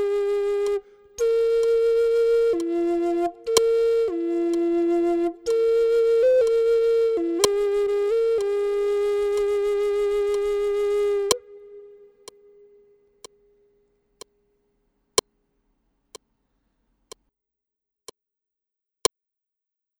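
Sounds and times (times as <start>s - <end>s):
Zuni sunrise flute: 0.0s - 12.8s.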